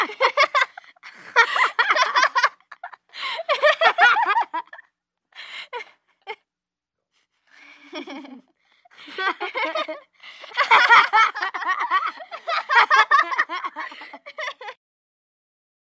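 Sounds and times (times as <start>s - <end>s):
three children laughing: 0.0s - 4.8s, 7.6s - 14.8s.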